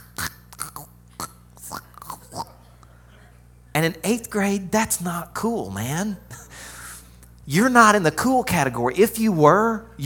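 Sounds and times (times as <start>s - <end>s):
person clearing throat in raspy guttural bursts: 0.0s - 2.8s
speech: 3.8s - 6.4s, 7.5s - 10.0s.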